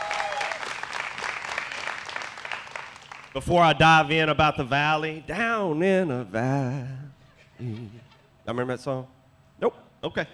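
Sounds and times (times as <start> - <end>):
audience hand clapping: 0.0 - 3.4
speech: 3.4 - 10.3.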